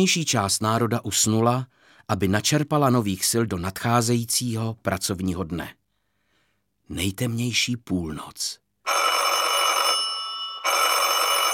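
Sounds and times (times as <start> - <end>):
speech: 0.0 - 5.8, 6.9 - 9.0
doorbell ringing: 8.9 - 11.5.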